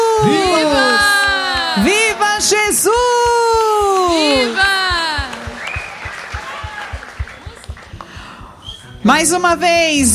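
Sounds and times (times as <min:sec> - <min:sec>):
people shouting and laughing: 0:00.0 - 0:07.7
crowd clapping at a Portuguese-language worship gathering: 0:00.0 - 0:08.6
speech: 0:00.2 - 0:00.9, 0:01.8 - 0:03.1, 0:09.0 - 0:10.1.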